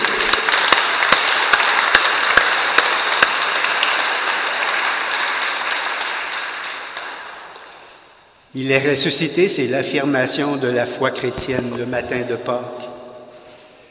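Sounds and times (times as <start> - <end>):
audience applauding: 0.0 - 7.9
speech: 8.6 - 12.9.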